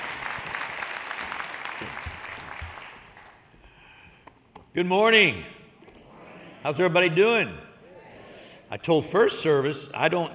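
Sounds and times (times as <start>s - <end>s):
church congregation applauding at a morning service: 0.0s - 3.6s
speech: 4.8s - 5.6s, 6.6s - 7.7s, 8.7s - 10.3s.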